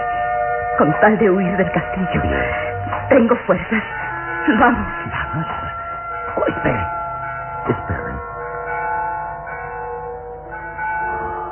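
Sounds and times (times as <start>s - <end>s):
tower church bell tolling death knell: 0.0s - 11.4s
speech: 0.8s - 5.6s, 6.4s - 7.0s, 7.6s - 8.3s.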